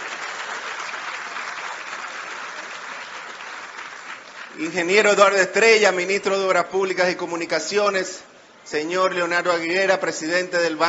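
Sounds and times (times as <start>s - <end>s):
applause from a crowd: 0.0s - 5.2s
speech: 4.6s - 10.8s.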